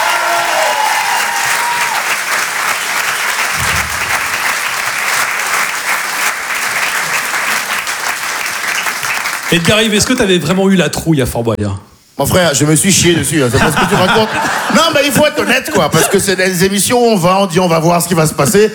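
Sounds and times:
audience applause: 0.0s - 10.5s
speech: 9.5s - 18.7s
laughter: 13.4s - 16.4s.

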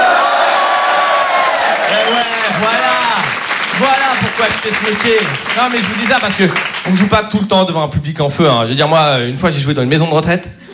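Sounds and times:
comedy show audience cheering and making noise: 0.0s - 6.9s
speech: 3.8s - 10.6s.

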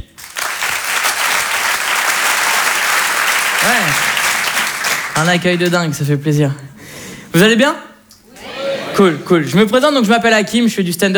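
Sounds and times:
audience applause: 0.0s - 5.8s
speech: 3.7s - 4.1s, 5.2s - 6.7s, 7.4s - 7.9s, 9.0s - 11.1s.

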